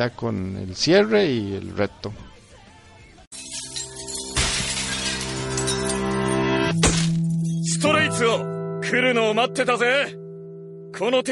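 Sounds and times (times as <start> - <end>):
speech: 0.0 - 2.3, 8.2 - 10.2, 11.0 - 11.3
anime season two ending theme song: 3.3 - 11.3.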